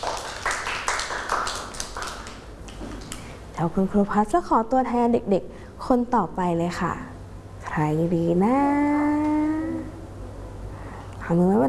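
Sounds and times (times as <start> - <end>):
children clapping: 0.0 - 3.2
speech: 3.6 - 7.1, 7.7 - 9.2, 11.3 - 11.6.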